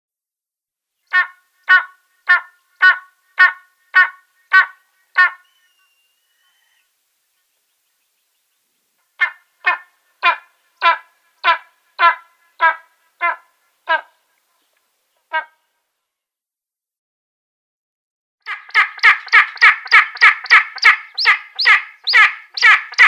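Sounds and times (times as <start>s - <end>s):
Spanish imperial eagle giving harsh barking calls: 1.1s - 5.7s, 9.2s - 14.2s, 15.3s - 15.6s, 18.5s - 23.0s.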